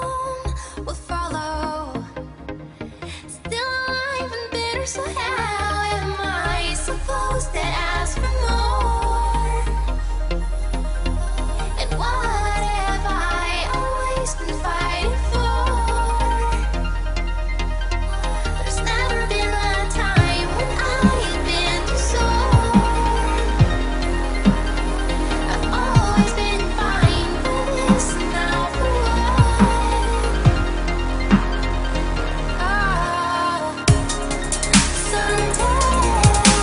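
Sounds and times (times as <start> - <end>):
female vocals: 0.0 - 2.4, 3.2 - 17.3, 18.0 - 31.8, 32.5 - 36.6
trance beat: 10.4 - 33.1, 33.9 - 36.6.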